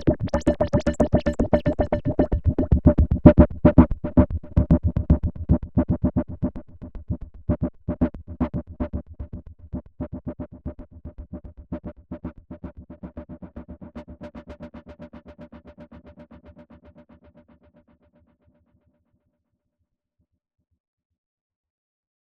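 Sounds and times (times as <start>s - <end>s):
Roland SE-02 synth LFO filter funk: 0.0s - 6.4s.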